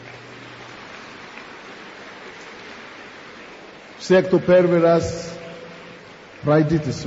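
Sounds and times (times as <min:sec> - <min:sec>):
crowd clapping: 0:00.0 - 0:03.3
speech: 0:04.0 - 0:05.3, 0:06.4 - 0:07.0.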